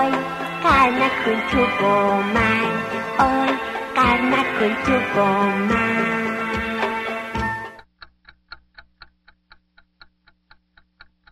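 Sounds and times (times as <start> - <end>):
burst of loud music: 0.0 - 7.8
wall clock ticking: 0.0 - 11.3
speech: 0.8 - 6.3.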